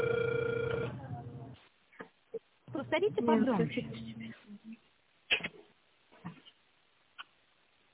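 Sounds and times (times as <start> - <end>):
telephone ringback tone from an unanswered call: 0.0 - 1.0
speech: 2.9 - 4.2.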